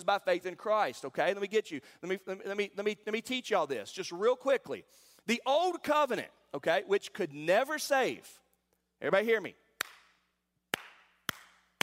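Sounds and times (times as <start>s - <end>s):
speech: 0.0s - 8.4s, 9.0s - 9.6s
hand clapping: 9.7s - 11.8s.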